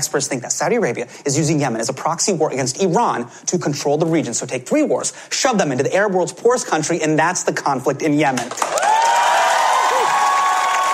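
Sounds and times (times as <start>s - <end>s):
speech: 0.0s - 8.8s
studio audience applause: 8.5s - 10.9s
studio audience cheering: 8.6s - 10.9s.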